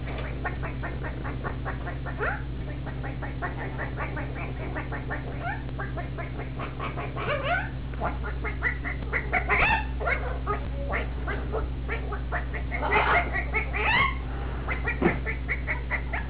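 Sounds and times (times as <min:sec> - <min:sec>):
chicken: 0:00.0 - 0:16.2.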